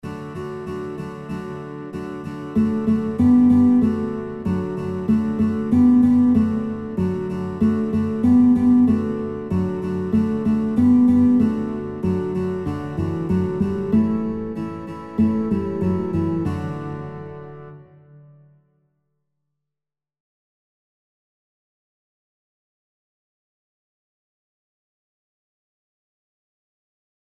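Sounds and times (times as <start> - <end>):
guitar: 0.0 - 18.8.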